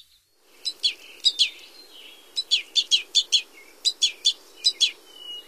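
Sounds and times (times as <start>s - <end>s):
red crossbill calls: 0.4s - 5.4s.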